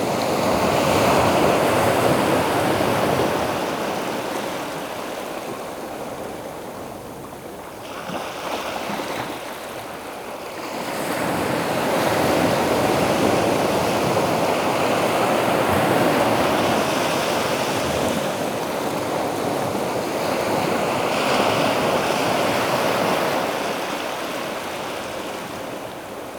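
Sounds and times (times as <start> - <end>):
ocean waves: 0.1 - 26.3.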